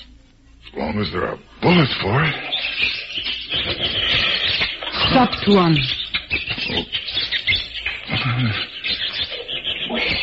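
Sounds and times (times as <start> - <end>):
speech: 0.7 - 2.9, 5.1 - 6.0, 8.2 - 8.7
troop of monkeys screeching in the jungle: 2.4 - 10.2.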